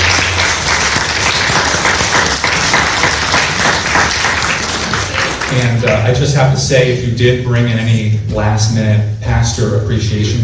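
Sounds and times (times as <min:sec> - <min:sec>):
audience applause: 0:00.0 - 0:06.0
speech: 0:05.6 - 0:10.4.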